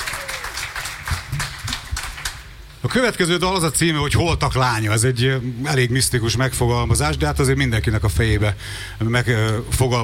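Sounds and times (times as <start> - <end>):
concert audience clapping between songs: 0.0 - 2.6
speech: 2.8 - 10.0.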